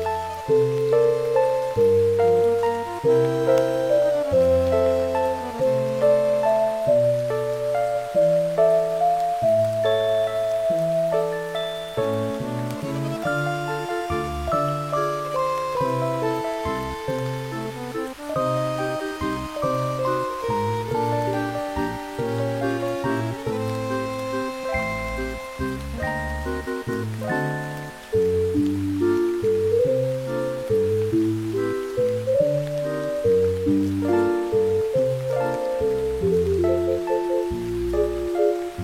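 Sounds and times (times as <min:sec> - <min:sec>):
music: 0:00.0 - 0:38.8
rain: 0:00.0 - 0:38.8.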